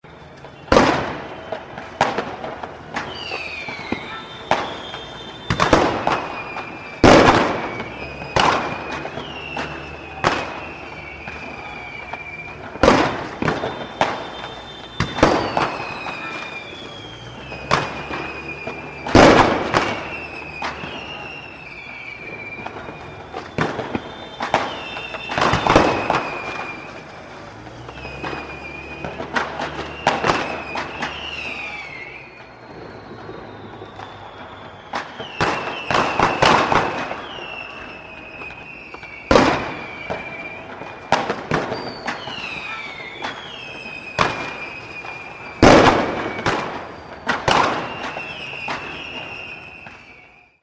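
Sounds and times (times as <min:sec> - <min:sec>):
fireworks and salutes in a city: 0:00.0 - 0:50.6.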